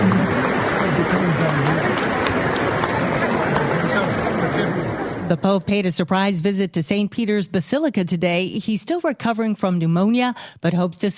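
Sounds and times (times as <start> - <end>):
applause for Pope Francis: 0.0 - 4.7
speech: 5.3 - 11.1.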